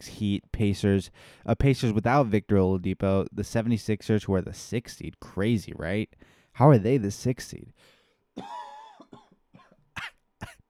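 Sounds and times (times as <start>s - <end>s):
speech: 0.0s - 8.6s
person with allergies clearing their throat: 8.4s - 10.6s
person with allergies coughing: 8.4s - 10.6s.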